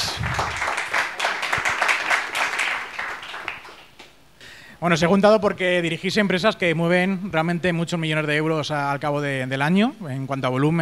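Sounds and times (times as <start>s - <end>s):
audience applause: 0.0s - 4.1s
speech: 4.8s - 10.8s.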